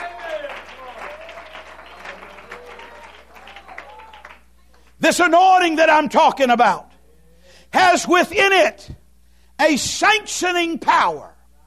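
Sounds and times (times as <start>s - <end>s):
audience clapping hands: 0.0s - 5.0s
speech: 5.1s - 6.9s, 7.7s - 9.0s, 9.6s - 11.3s.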